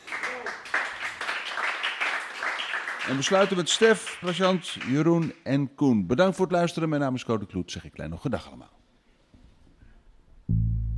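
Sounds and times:
audience applause: 0:00.0 - 0:05.1
speech: 0:03.1 - 0:08.8.

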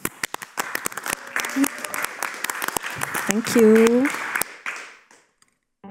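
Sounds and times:
audience applause: 0:00.0 - 0:05.2
speech: 0:03.3 - 0:04.2.

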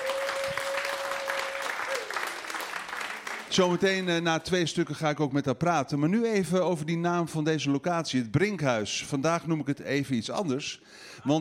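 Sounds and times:
audience applause: 0:00.0 - 0:03.9
speech: 0:03.5 - 0:11.3.

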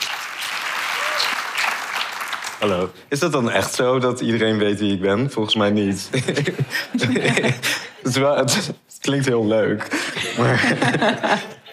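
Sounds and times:
warm audience applause: 0:00.0 - 0:02.8
speech: 0:02.6 - 0:11.6
laughter: 0:06.1 - 0:08.2, 0:09.8 - 0:11.7.

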